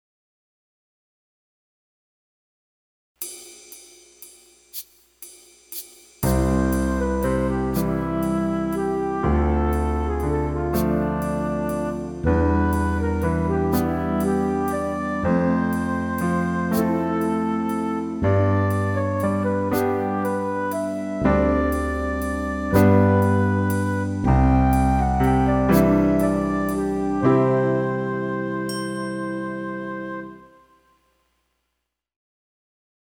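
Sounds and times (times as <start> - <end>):
slow piano pedal study: 6.2 - 30.6.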